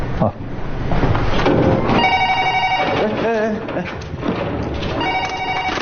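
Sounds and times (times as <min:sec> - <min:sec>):
speech: 0:00.2 - 0:00.4
room clatter: 0:00.9 - 0:05.8
telephone bell ringing: 0:02.0 - 0:03.2, 0:04.9 - 0:05.8
indistinct voices: 0:02.8 - 0:05.1.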